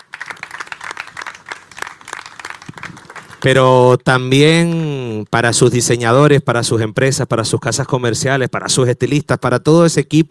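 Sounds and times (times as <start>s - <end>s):
audience applause: 0.0s - 3.7s
speech: 3.4s - 10.2s.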